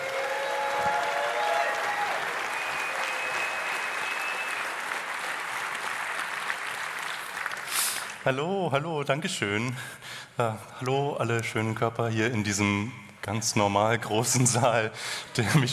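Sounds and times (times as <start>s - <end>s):
audience applause in a large hall: 0.0s - 8.3s
speech: 8.2s - 15.7s.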